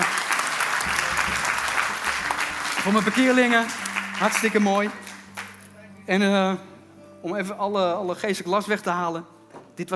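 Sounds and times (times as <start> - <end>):
audience applauding a lay preacher's converts at a Christian gathering: 0.0 - 5.7
speech: 2.8 - 5.1, 6.1 - 9.9.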